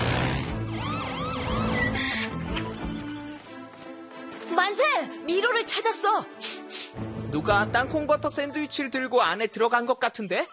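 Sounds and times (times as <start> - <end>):
imitations of baby elephant call: 0.8 - 2.5
speech: 4.7 - 10.5.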